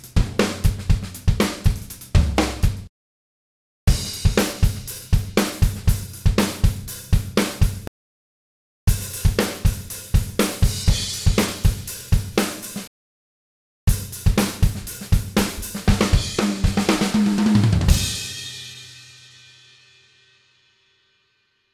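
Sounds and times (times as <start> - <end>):
modern rock drumbeat at 120 BPM: 0.0 - 2.9, 3.9 - 7.9, 8.9 - 12.8, 13.9 - 18.6.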